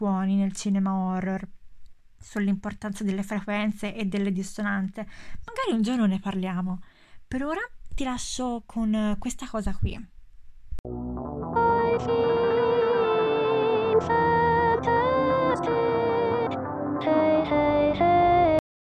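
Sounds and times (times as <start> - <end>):
speech: 0.0 - 1.6, 2.2 - 10.1, 10.8 - 11.3, 12.0 - 12.4
eerie song sung by a mannequin android: 10.9 - 18.6.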